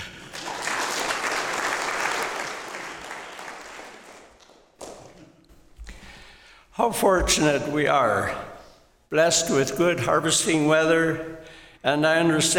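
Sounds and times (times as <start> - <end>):
audience applause welcoming a returning speaker: 0.0 - 5.0
speech: 6.8 - 8.5, 9.1 - 12.5.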